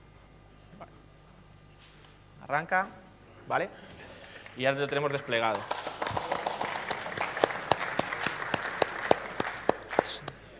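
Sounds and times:
speech: 0:02.5 - 0:04.0, 0:04.6 - 0:06.2
sparse, subdued audience applause: 0:04.2 - 0:10.5.

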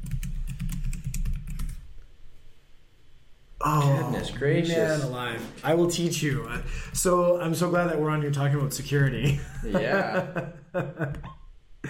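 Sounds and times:
password typed on a computer keyboard: 0:00.0 - 0:01.8
speech: 0:03.6 - 0:11.8
laughter: 0:09.2 - 0:11.3.

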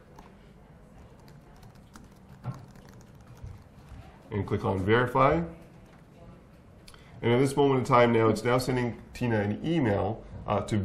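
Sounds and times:
typing a student email address on a computer keyboard: 0:01.0 - 0:04.4, 0:05.5 - 0:06.2
speech: 0:04.3 - 0:05.6, 0:07.2 - 0:10.8.

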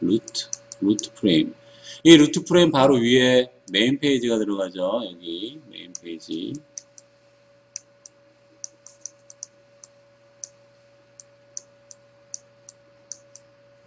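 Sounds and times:
speech: 0:00.1 - 0:06.7
computer mouse clicking: 0:00.2 - 0:01.1, 0:06.8 - 0:07.1, 0:07.8 - 0:10.6, 0:11.2 - 0:13.5.

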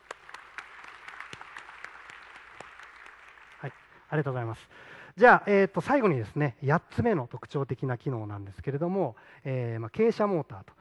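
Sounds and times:
audience applause: 0:00.0 - 0:04.1
speech: 0:03.6 - 0:10.7.

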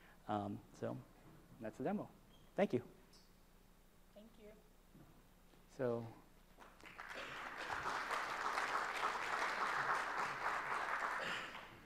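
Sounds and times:
speech: 0:00.3 - 0:03.2, 0:05.8 - 0:06.2
audience clapping: 0:06.6 - 0:11.8.

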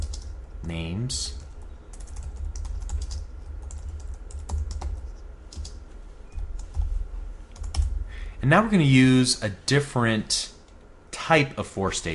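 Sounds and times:
typing on a computer keyboard: 0:00.0 - 0:00.4, 0:01.4 - 0:05.8, 0:07.6 - 0:07.9
speech: 0:00.7 - 0:01.4, 0:08.4 - 0:10.5, 0:11.3 - 0:12.1.

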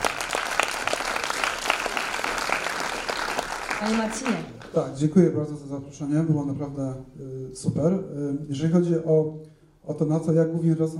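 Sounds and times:
audience applause: 0:00.0 - 0:04.8
speech: 0:03.8 - 0:10.9.

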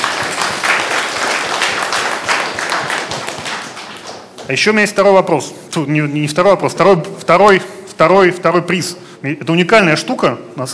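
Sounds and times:
audience applause for a prize winner: 0:00.0 - 0:04.4
speech: 0:04.5 - 0:10.7.

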